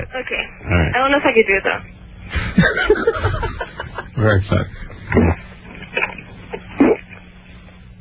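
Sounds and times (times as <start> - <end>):
speech: 0.0 - 2.0, 2.6 - 3.4, 4.2 - 5.4
faint low hum: 0.0 - 7.9
laughter: 2.3 - 6.8
gulping from an attempted burp: 4.4 - 7.3.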